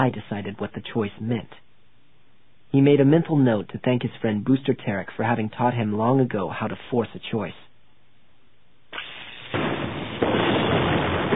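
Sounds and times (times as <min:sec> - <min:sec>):
speech: 0:00.0 - 0:01.6, 0:02.7 - 0:07.6
explosion blasting open a door: 0:08.9 - 0:11.3
sustained crackling roar: 0:09.0 - 0:11.3.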